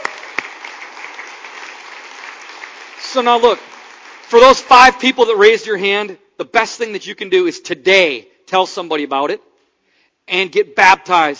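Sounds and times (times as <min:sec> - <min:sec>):
scattered clapping from a church congregation: 0:00.0 - 0:05.0
speech: 0:03.1 - 0:03.7, 0:04.3 - 0:09.5, 0:10.3 - 0:11.3.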